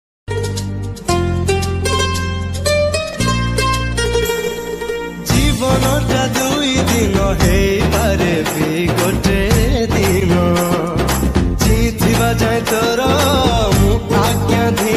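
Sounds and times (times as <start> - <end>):
Odia devotional bhajan ringtone: 0.3 - 14.9.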